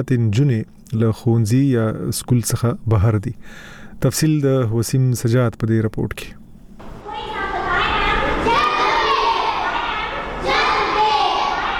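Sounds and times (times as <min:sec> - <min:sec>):
speech: 0:00.0 - 0:06.4
children's voices at a school for working children in Peshawar: 0:06.8 - 0:11.7.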